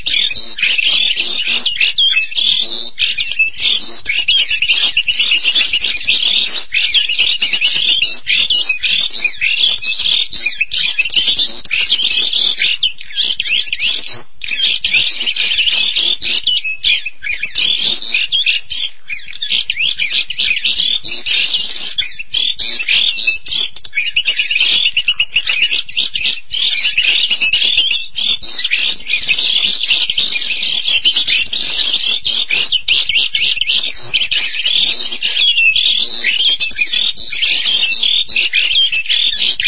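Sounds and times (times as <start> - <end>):
starling singing: 0.0 - 39.6.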